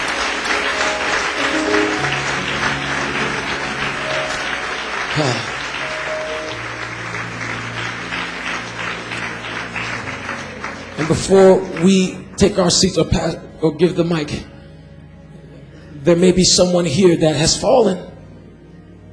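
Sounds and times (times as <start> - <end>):
audience clapping hands: 0.0 - 12.8
speech: 5.2 - 5.5, 11.1 - 14.5, 16.0 - 18.1.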